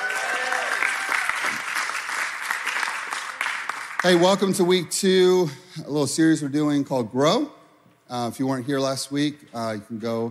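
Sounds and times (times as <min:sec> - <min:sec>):
church congregation applauding the worship team: 0:00.0 - 0:04.6
speech: 0:04.0 - 0:10.2.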